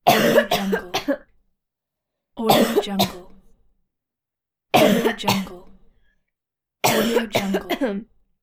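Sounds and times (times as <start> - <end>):
woman coughing: 0.0 - 1.3, 2.4 - 3.4, 4.8 - 5.7, 6.8 - 8.1.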